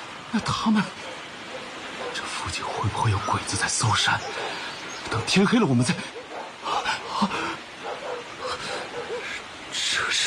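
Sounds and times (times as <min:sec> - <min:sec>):
speech: 0:00.3 - 0:01.1, 0:02.2 - 0:06.2
dogs barking and yipping: 0:01.0 - 0:02.5, 0:03.9 - 0:09.6.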